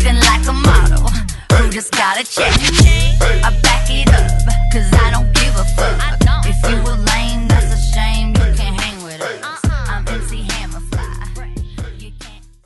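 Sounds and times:
drums at 70 BPM: 0.0 - 12.1
hype record scratch: 2.4 - 3.9.

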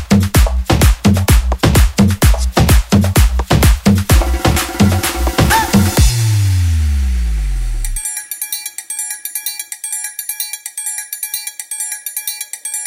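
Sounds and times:
guaracha music: 0.0 - 8.8.

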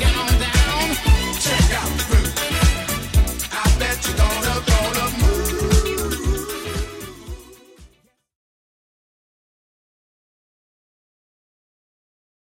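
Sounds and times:
80s Redrum drum beat at 116 bpm: 0.0 - 7.8.

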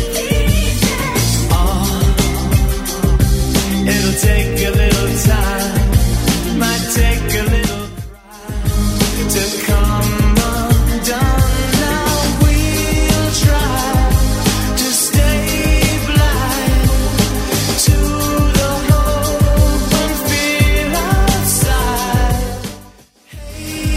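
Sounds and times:
80s Redrum drum machine beat at 88 bpm: 0.0 - 23.9.

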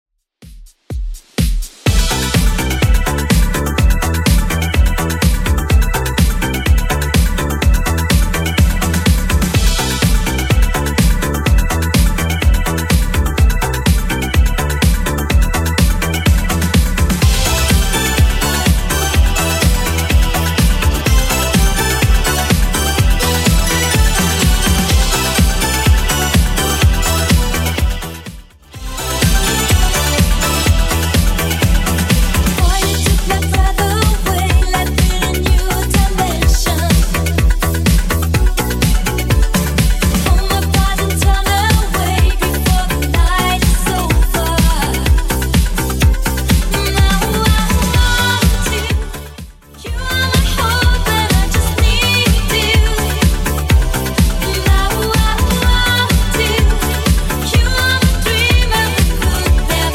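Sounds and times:
80s Redrum drum machine beat: 0.3 - 59.9.

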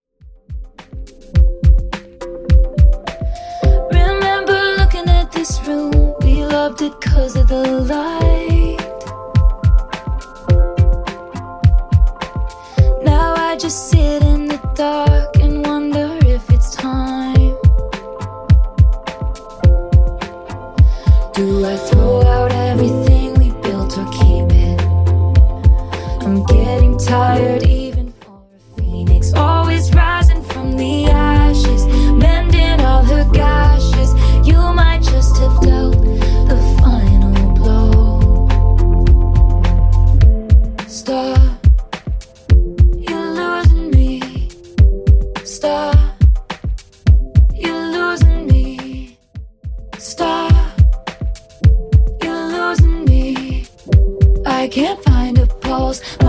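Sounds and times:
Top 40 pop music at 105 bpm: 0.8 - 49.2, 49.8 - 56.2.

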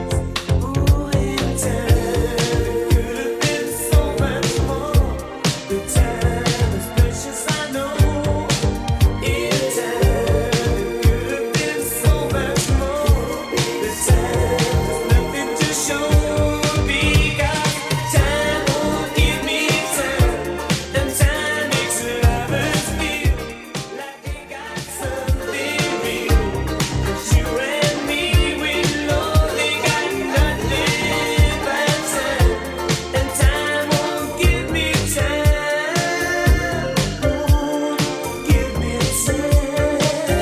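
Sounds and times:
80s style music beat at 118 bpm: 0.0 - 40.4.

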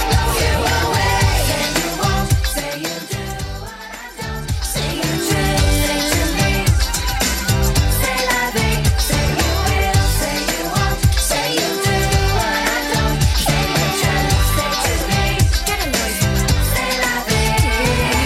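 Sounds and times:
90s style drum beat: 0.0 - 18.2.

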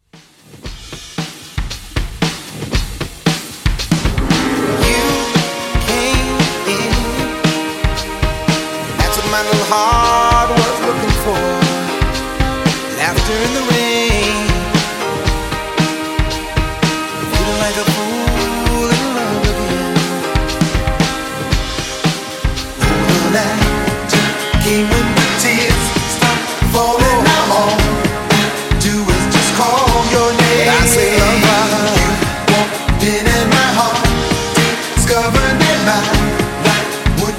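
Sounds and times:
classic 90s music beat at 115 BPM: 0.7 - 37.3.

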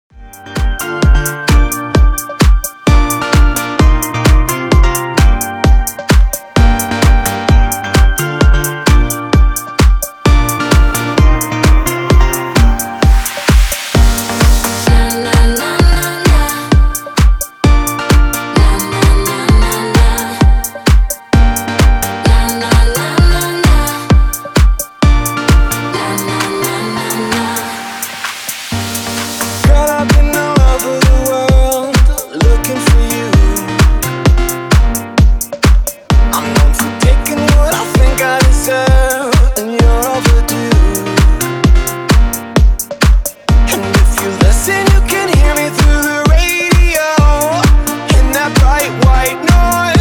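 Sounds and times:
130 bpm music track: 0.1 - 50.0.

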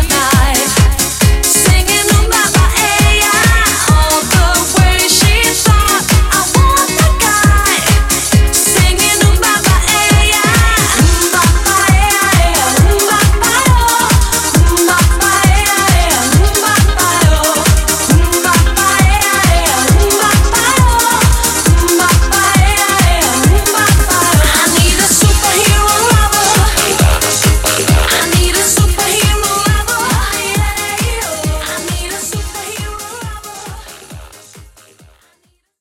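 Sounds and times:
90s dance music at 135 BPM: 0.0 - 35.6.

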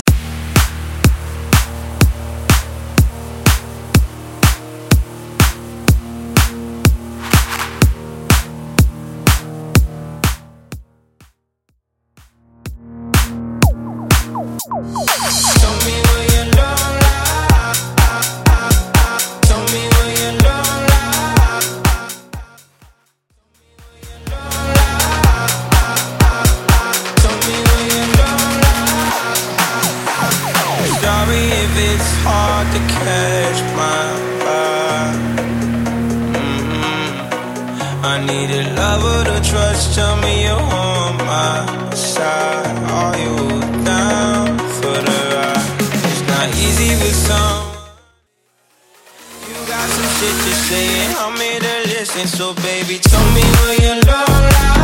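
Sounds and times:
vocal house club mix at 124 BPM: 0.0 - 10.5, 12.6 - 22.7, 23.7 - 48.0, 49.0 - 54.8.

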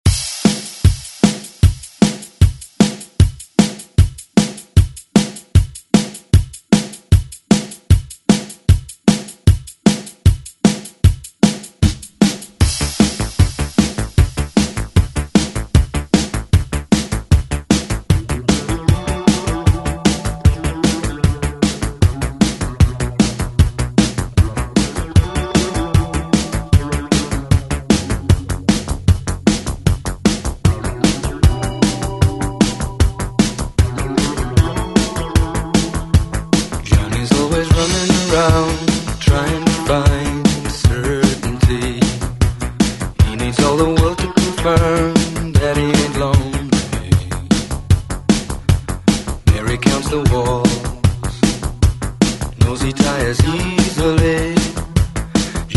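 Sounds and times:
eighties drum beat: 0.0 - 55.7.

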